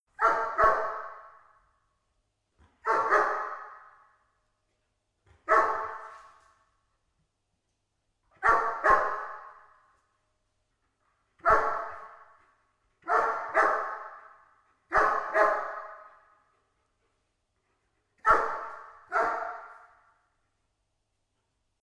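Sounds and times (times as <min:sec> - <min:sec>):
dog barking: 0:00.1 - 0:01.6, 0:02.8 - 0:04.2, 0:05.4 - 0:06.4, 0:08.4 - 0:09.9, 0:11.4 - 0:12.4, 0:13.0 - 0:16.5, 0:18.2 - 0:20.2.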